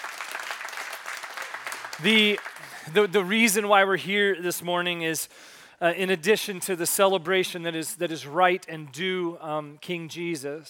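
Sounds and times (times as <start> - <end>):
audience clapping: 0.0 - 3.4
speech: 2.0 - 10.6.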